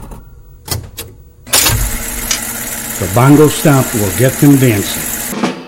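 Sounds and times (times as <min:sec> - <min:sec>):
jukebox whirring and rattling: 0:01.5 - 0:05.3
speech: 0:03.0 - 0:05.1.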